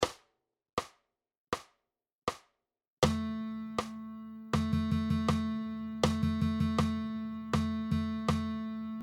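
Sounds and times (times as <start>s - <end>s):
guitar playing rhythm dictation exercises: 3.0s - 9.0s.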